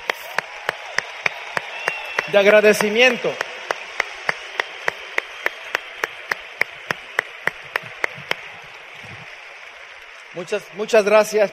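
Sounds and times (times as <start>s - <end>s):
audience clapping: 0.0s - 11.5s
speech: 2.3s - 3.5s, 10.4s - 11.5s.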